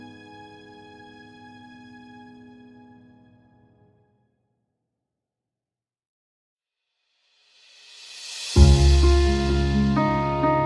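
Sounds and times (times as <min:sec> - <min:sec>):
calm piano chords: 0:08.6 - 0:10.6.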